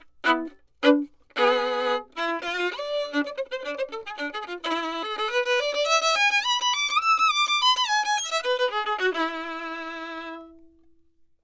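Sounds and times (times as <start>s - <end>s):
violin: 0.0s - 11.0s.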